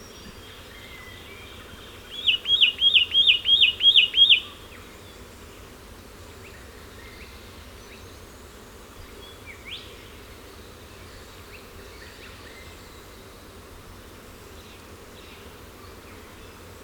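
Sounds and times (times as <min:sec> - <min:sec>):
Satin Flycatcher Myiagra cyanoleuca calling: 0:02.0 - 0:04.8.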